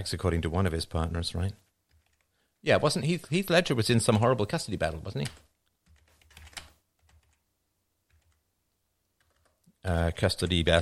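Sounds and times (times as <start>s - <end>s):
speech: 0.0s - 1.6s, 2.6s - 5.5s, 9.8s - 10.8s
typing on a computer keyboard: 1.6s - 2.3s, 5.2s - 7.4s, 8.1s - 8.4s, 9.2s - 9.7s.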